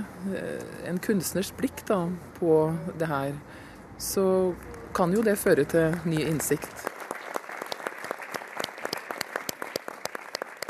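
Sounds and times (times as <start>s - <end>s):
speech: 0.2s - 6.9s
restrained theatre audience applause: 6.8s - 10.6s.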